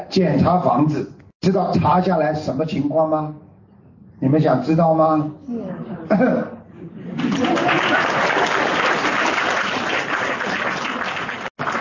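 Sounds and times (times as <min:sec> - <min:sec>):
speech: 0:00.0 - 0:03.4, 0:04.2 - 0:06.6
laughter: 0:05.8 - 0:08.5
audience applause: 0:07.2 - 0:11.8.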